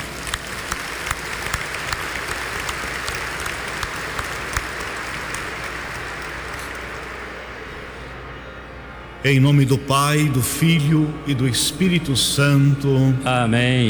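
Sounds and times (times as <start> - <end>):
audience applause: 0.0 - 7.9
speech: 9.2 - 13.8.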